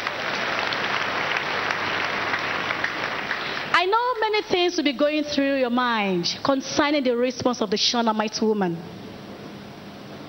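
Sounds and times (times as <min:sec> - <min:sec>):
audience clapping: 0:00.0 - 0:03.8
speech: 0:04.4 - 0:09.0.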